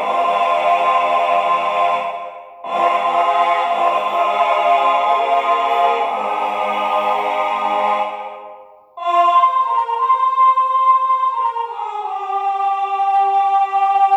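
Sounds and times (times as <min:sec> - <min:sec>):
choir singing: 0:00.0 - 0:14.1.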